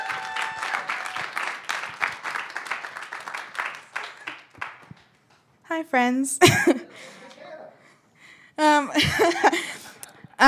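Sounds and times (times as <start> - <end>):
crowd applauding: 0.0 - 5.4
speech: 5.8 - 6.8, 9.0 - 9.6
laughter: 6.4 - 7.6, 8.9 - 10.4.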